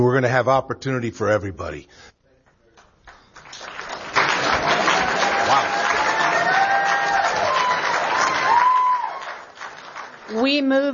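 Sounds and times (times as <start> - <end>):
speech: 0.0 - 2.2, 10.3 - 10.9
audience clapping: 2.5 - 10.9
voices cheering: 4.2 - 9.7.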